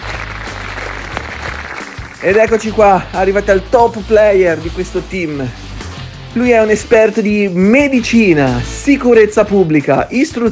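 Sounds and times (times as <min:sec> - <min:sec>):
applause: 0:00.0 - 0:02.8
speech: 0:02.2 - 0:05.7, 0:06.3 - 0:10.4.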